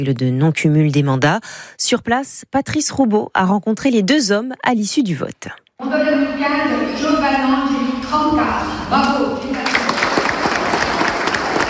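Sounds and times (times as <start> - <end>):
speech: 0.0 - 9.4
crowd applauding after an election vote: 9.6 - 11.6.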